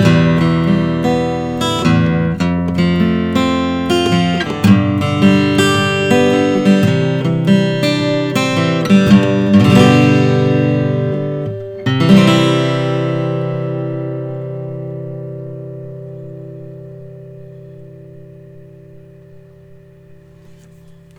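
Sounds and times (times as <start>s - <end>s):
varnished 2008 Collings 000 42 guitar: 0.0s - 21.1s.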